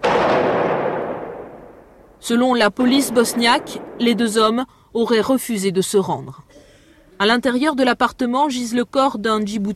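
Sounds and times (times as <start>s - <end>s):
exchange of gunfire inside a building: 0.0s - 2.2s, 2.8s - 4.6s
speech: 2.2s - 6.4s, 7.2s - 9.7s.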